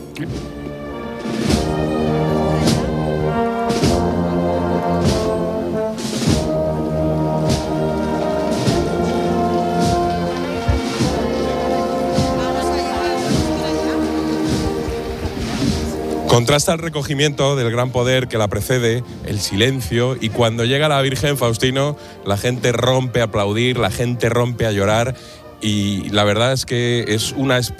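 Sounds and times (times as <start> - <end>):
live band playing at street procession: 0.0 - 16.7
speech: 0.2 - 0.6, 16.4 - 27.7.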